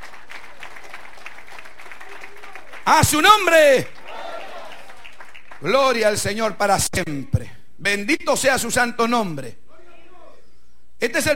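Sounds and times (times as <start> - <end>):
church congregation applauding in praise: 0.0 - 6.3
speech: 2.9 - 4.0, 5.6 - 9.6, 11.0 - 11.3.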